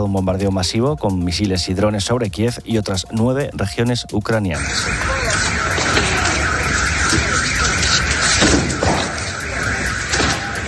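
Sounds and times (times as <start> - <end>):
speech: 0.0 - 5.6
air raid alarm sirens: 4.5 - 10.6.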